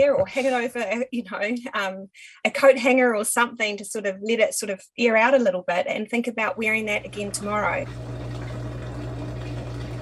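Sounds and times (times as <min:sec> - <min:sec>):
speech: 0:00.0 - 0:08.2
washing machine: 0:06.7 - 0:10.0.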